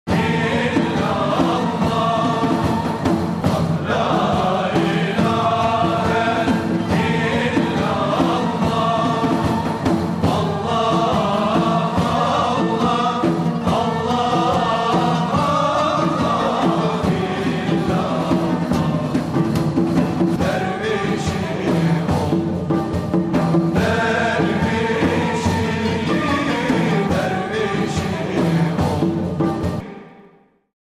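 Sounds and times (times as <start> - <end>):
Sufi song: 0.1 - 30.2.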